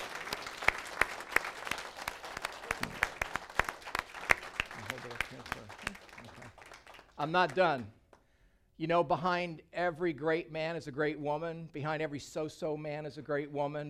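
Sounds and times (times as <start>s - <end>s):
audience applause: 0.0s - 7.9s
speech: 7.2s - 8.0s, 8.8s - 13.8s.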